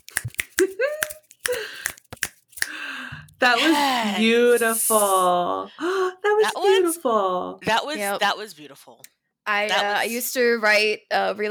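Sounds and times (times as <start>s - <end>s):
audience finger snapping: 0.0s - 2.8s
speech: 3.4s - 11.4s.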